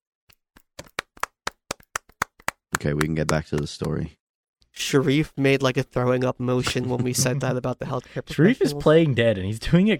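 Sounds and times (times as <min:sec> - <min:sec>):
round of applause hand claps: 0:00.6 - 0:04.1
speech: 0:02.8 - 0:04.2, 0:04.8 - 0:09.9.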